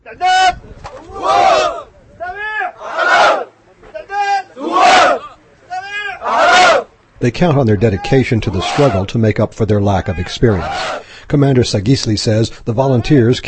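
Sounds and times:
volunteers shouting in unison at a shooting range drill: 1.0 - 1.8, 2.8 - 3.5, 4.6 - 5.3, 6.2 - 6.9
speech: 7.2 - 13.4.

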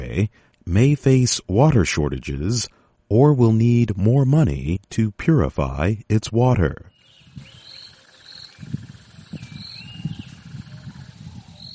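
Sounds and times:
speech: 0.2 - 7.5
high bird whistles in a wetland: 7.0 - 8.7, 9.3 - 11.7
steady insect drone: 7.1 - 11.7
rumbling low-pitched animal calls: 7.2 - 11.7.

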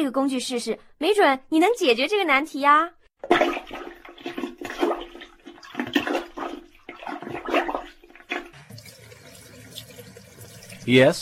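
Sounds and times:
speech: 0.0 - 4.4, 10.9 - 11.1
water rushing and gurgling as a bathtub drain clears after plunging: 3.2 - 10.9.

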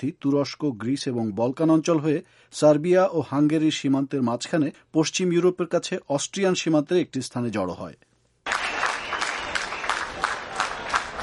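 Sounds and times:
speech: 0.0 - 8.1
applause welcoming migrants arriving by train from Hungary in Vienna: 8.4 - 11.2.

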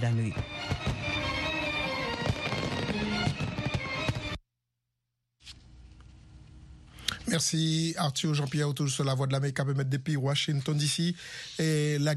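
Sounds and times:
speech: 0.0 - 0.9, 7.3 - 12.1
fireworks over the U.S. Capitol in Washington after a July 4 concert: 0.3 - 4.4.

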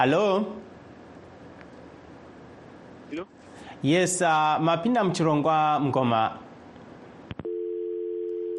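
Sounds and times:
speech: 0.0 - 0.7, 3.1 - 6.4
telephone line tone after caller dropped: 7.4 - 8.5.

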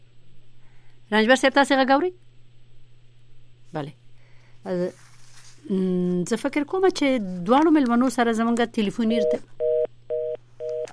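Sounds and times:
low constant hum: 0.0 - 10.9
speech: 1.1 - 2.2, 3.7 - 4.0, 4.6 - 5.0, 5.6 - 9.6
telephone beeps after a dropped call connection: 9.1 - 10.9.

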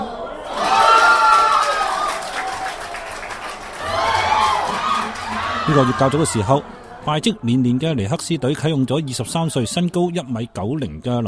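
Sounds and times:
sports bar crowd cheering and shouting: 0.0 - 3.1, 3.7 - 7.2
speech: 5.7 - 11.2.

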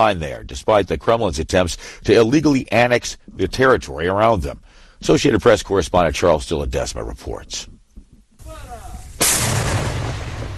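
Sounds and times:
speech: 0.0 - 7.7
Ukrainian Soviet-made T-64 tank cannon blast in the Donbas region: 9.2 - 10.5.

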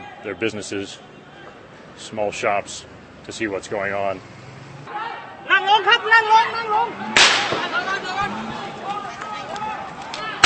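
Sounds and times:
speech: 0.2 - 1.2, 2.0 - 4.4, 6.1 - 8.6
gunshots fired during a street protest: 7.1 - 7.9.

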